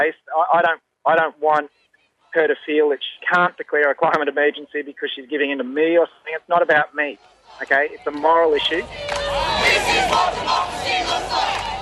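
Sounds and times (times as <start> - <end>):
speech: 0.0 - 11.7
crowd cheering arrested protesters in Melbourne: 7.2 - 11.8.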